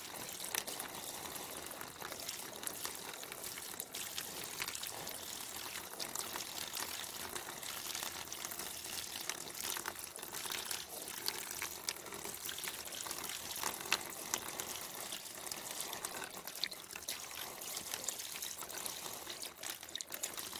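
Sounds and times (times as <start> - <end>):
bamboo water fountain trickling and splashing: 0.0 - 20.5.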